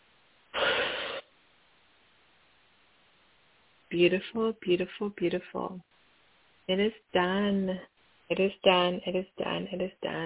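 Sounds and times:
hiss: 0.0s - 10.2s
deep breath during a guided meditation: 0.5s - 1.3s
speech: 3.9s - 6.0s, 6.7s - 10.2s.

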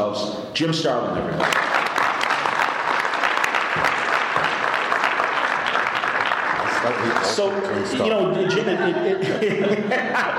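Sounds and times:
speech: 0.0s - 1.7s, 6.8s - 10.3s
audience applause: 1.4s - 8.0s
laughter: 6.6s - 10.3s.

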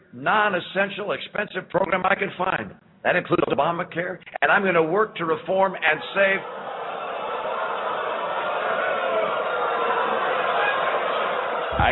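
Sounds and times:
speech: 0.1s - 6.6s
large crowd booing a speaker: 5.9s - 11.8s.

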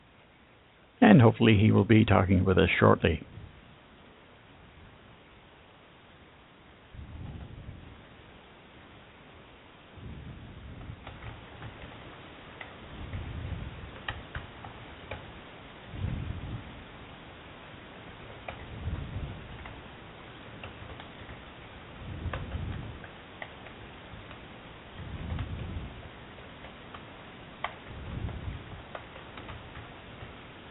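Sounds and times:
speech: 1.2s - 3.3s
frantic typing on a keyboard: 10.8s - 15.4s, 18.2s - 30.7s.

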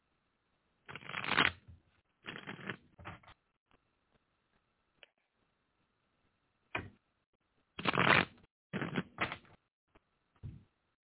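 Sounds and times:
tarot cards being shuffled for a reading: 0.9s - 1.6s, 2.3s - 3.2s, 7.8s - 9.6s.

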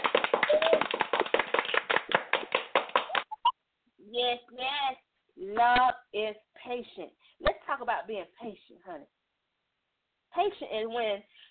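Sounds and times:
hands clapping: 0.0s - 3.5s
speech: 4.2s - 9.2s, 10.4s - 11.5s.

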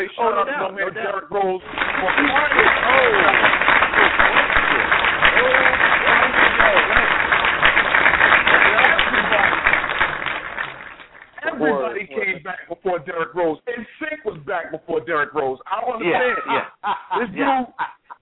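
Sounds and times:
speech: 0.0s - 5.8s, 11.6s - 18.1s
canned audience applause sound effect: 1.6s - 12.0s
laughter: 1.6s - 13.4s, 15.9s - 18.1s.

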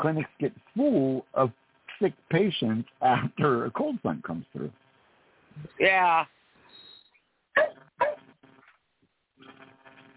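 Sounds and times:
speech: 0.0s - 4.8s, 5.6s - 6.4s
dog barking: 7.6s - 8.2s.

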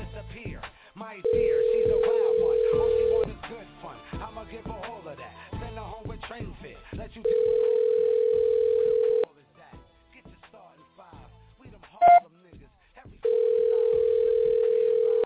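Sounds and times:
telephone dial tone: 1.4s - 3.3s, 7.3s - 9.3s, 13.3s - 15.2s.

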